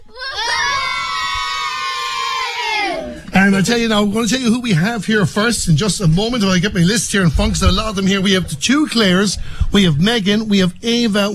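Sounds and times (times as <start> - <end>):
young supporters cheering and shouting: 0.0 - 3.3
speech: 3.5 - 11.3.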